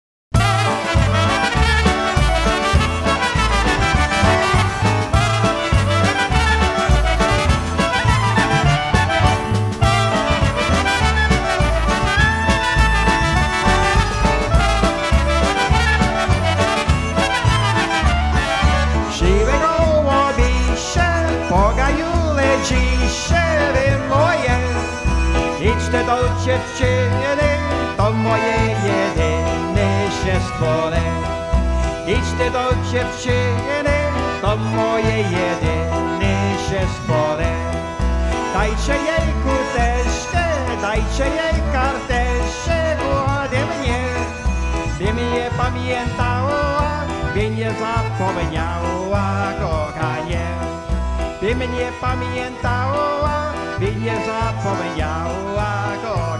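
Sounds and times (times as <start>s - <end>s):
polka: 0.3s - 56.3s.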